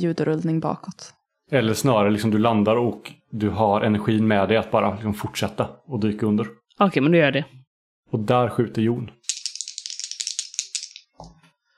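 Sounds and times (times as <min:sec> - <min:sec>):
speech: 0:00.0 - 0:09.2
dice being rolled: 0:09.2 - 0:11.4.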